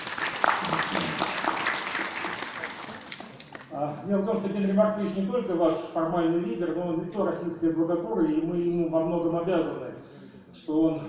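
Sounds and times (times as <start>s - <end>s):
audience applause: 0.0s - 3.7s
speech: 4.0s - 9.8s, 10.6s - 11.0s.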